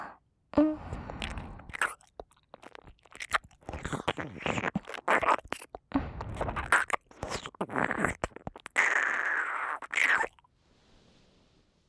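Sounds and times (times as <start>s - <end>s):
oral sex sounds: 0.5s - 10.5s
ear kissing sounds: 4.1s - 10.4s.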